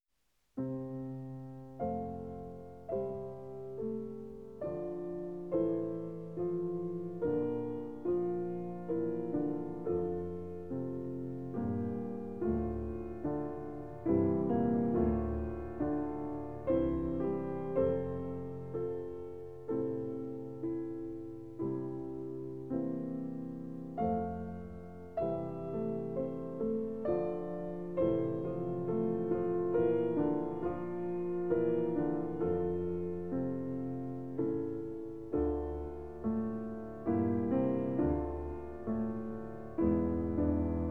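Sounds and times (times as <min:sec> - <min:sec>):
solo piano piece: 0:00.2 - 0:40.9.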